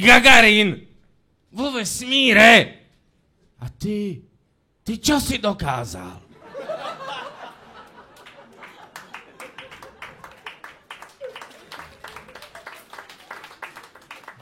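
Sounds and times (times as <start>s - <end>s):
speech: 0.0s - 0.9s, 1.5s - 2.8s, 3.6s - 6.7s
laughter: 6.3s - 13.7s
lukewarm applause from a stand-up comedy audience: 8.1s - 14.3s.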